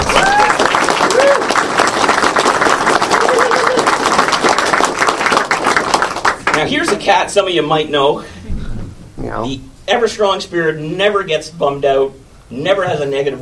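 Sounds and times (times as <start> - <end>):
audience applause: 0.0 - 7.0
speech: 6.9 - 8.4, 9.2 - 13.4.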